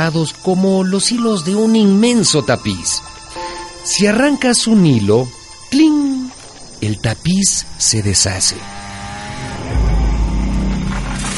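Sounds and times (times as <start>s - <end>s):
speech: 0.0s - 3.1s, 3.8s - 6.2s, 6.8s - 8.9s
chainsaw running: 8.5s - 11.3s.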